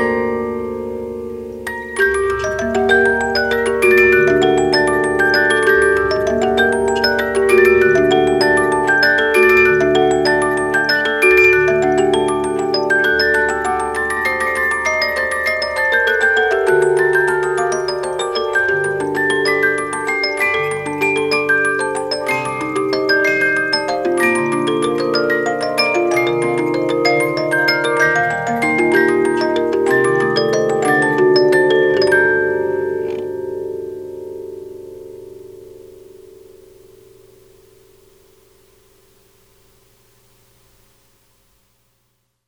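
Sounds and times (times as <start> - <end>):
72-note music box playing a classical piece in three parts: 0.0 - 41.1.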